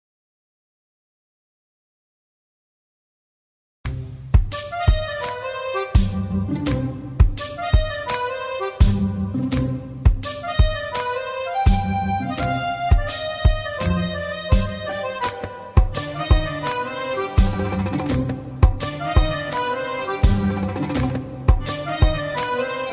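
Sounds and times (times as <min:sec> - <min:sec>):
South Indian Tamil love background music ringtone: 0:04.9 - 0:22.9.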